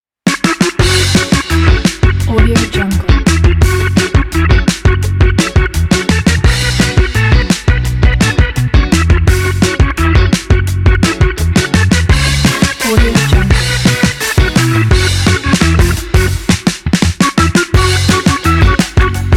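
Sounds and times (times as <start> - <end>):
quirky upbeat food music: 0.3 - 19.3.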